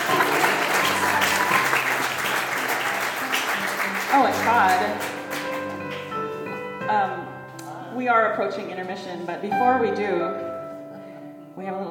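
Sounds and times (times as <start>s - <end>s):
audience applause: 0.0s - 5.8s
speech: 4.1s - 5.1s, 8.0s - 10.5s, 11.6s - 11.8s.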